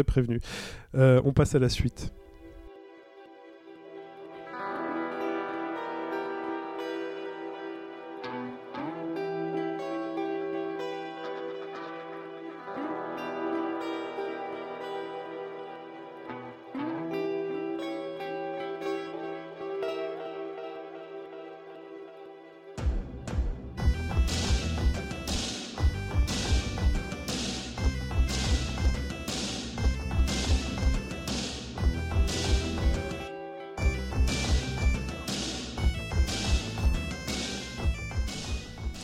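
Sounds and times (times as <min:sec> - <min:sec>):
speech: 0:00.0 - 0:02.2
instrumental video game music: 0:02.3 - 0:39.0
steady drum hits: 0:22.8 - 0:33.2, 0:33.8 - 0:39.0.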